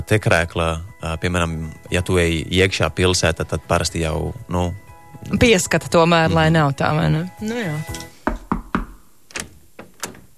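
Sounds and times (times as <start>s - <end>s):
speech: 0.0s - 8.1s
knocking on a door: 8.3s - 9.0s.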